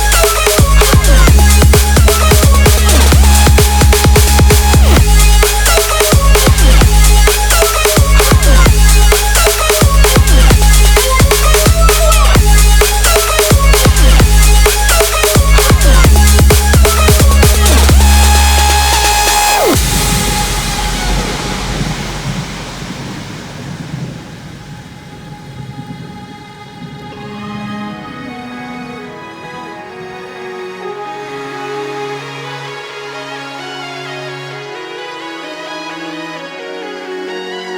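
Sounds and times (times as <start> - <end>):
breakbeat music: 0.0 - 23.4.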